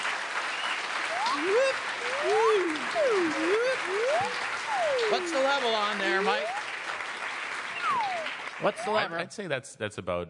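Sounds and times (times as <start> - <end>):
crowd clapping: 0.0 - 9.2
whoops and cheers: 1.1 - 6.7, 7.7 - 8.6
speech: 1.4 - 2.4, 3.0 - 6.6, 8.6 - 10.2.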